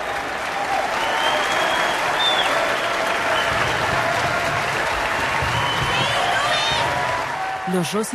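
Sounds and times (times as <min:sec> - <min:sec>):
audience applauding in a standing ovation: 0:00.0 - 0:08.1.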